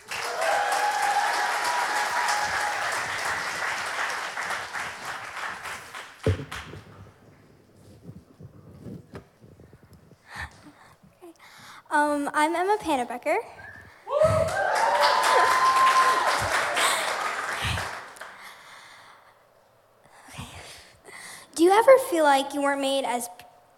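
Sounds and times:
audience cheering and applause: 0.0 - 6.7, 14.1 - 18.4
speech: 6.2 - 6.9, 12.0 - 13.6, 21.8 - 23.4.

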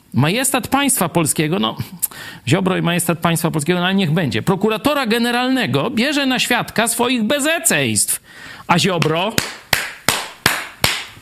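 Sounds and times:
speech: 0.1 - 9.6
hands clapping: 9.0 - 11.2.

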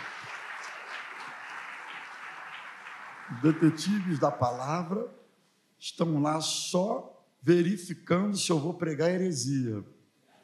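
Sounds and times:
round of applause: 0.0 - 4.9
speech: 3.3 - 5.2, 5.8 - 10.0.

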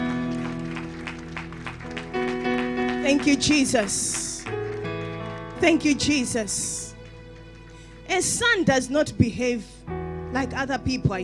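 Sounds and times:
audience clapping in praise: 0.0 - 8.1
speech: 3.1 - 4.3, 5.6 - 6.8, 8.2 - 11.2.

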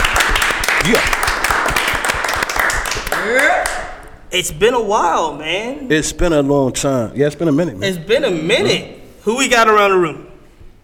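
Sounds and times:
people clapping: 0.0 - 4.2
speech: 0.9 - 1.2, 3.2 - 10.3.

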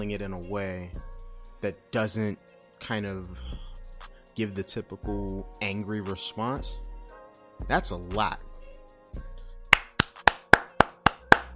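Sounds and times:
speech: 0.0 - 3.7, 4.4 - 6.9, 7.6 - 8.5
single person clapping hands: 9.7 - 11.5.

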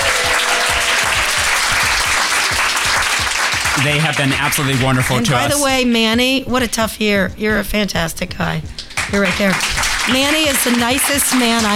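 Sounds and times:
audience applause: 0.0 - 5.6, 8.9 - 11.7
speech: 3.8 - 11.7.

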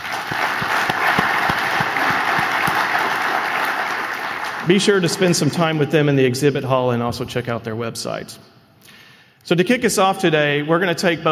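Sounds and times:
audience applause: 0.0 - 5.4
speech: 4.7 - 8.5, 9.5 - 11.2.

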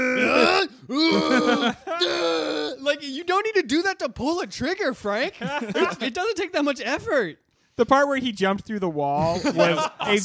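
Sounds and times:
person imitating an effortful yell: 0.0 - 2.8
laughter: 1.0 - 2.0, 5.3 - 6.3, 9.2 - 10.2
speech: 3.0 - 10.2.

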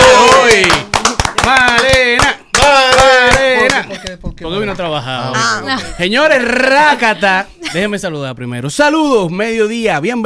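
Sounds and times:
audience applause: 0.0 - 3.8
speech: 4.4 - 10.2.

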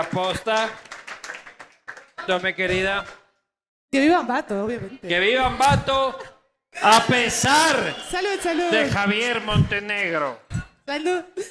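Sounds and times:
speech: 0.0 - 0.9, 2.3 - 3.2, 3.9 - 11.4
audience applause: 0.0 - 3.2, 6.8 - 10.3.

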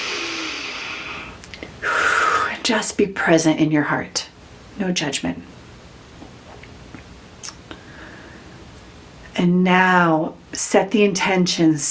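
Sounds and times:
deep inhalation during a guided meditation: 0.0 - 2.6, 7.7 - 8.6
speech: 2.7 - 5.5, 9.4 - 11.8.

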